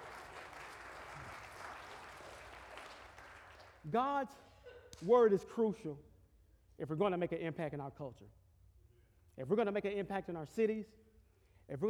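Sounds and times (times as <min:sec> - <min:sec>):
audience clapping: 0:00.0 - 0:04.0
speech: 0:03.8 - 0:06.1, 0:06.8 - 0:08.4, 0:09.4 - 0:11.0, 0:11.7 - 0:11.8.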